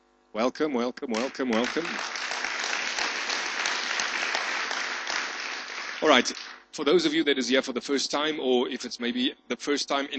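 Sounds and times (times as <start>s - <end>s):
speech: 0.4s - 2.3s, 6.0s - 10.1s
church congregation applauding after worship: 1.1s - 6.7s.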